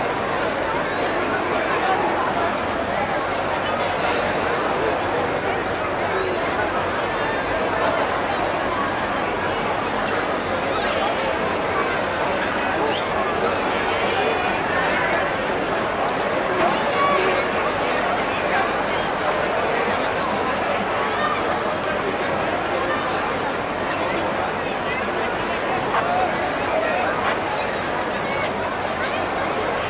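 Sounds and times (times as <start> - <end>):
large outdoor festival audience crowd walla: 0.0 - 29.8.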